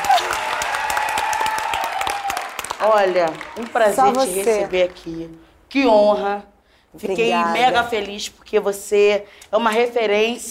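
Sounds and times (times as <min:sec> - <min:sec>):
audience applause: 0:00.0 - 0:05.2
speech: 0:02.8 - 0:10.4.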